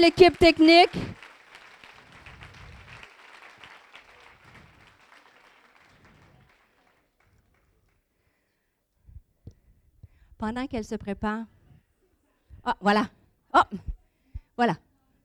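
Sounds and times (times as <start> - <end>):
speech: 0.0 - 1.2, 10.4 - 11.6, 12.6 - 14.0, 14.6 - 14.8
audience applause: 0.0 - 8.0.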